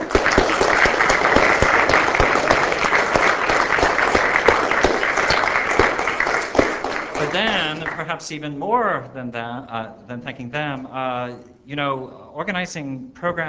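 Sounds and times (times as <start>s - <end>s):
audience applause: 0.0s - 8.2s
speech: 8.0s - 13.4s.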